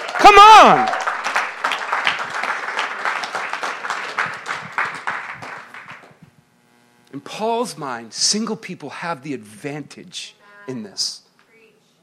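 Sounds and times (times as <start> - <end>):
audience clapping: 0.0 - 6.2
speech: 0.2 - 1.0, 7.4 - 11.2.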